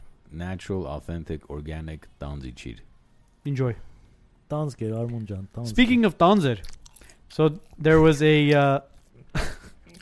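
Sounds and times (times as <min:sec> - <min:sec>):
speech: 0:00.3 - 0:03.9, 0:04.5 - 0:09.6
chewing dried pear into microphone: 0:06.6 - 0:07.9.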